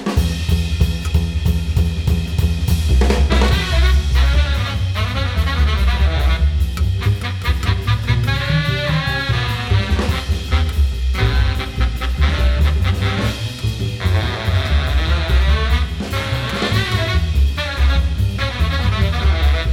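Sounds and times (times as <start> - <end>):
jazz music: 0.1 - 19.7.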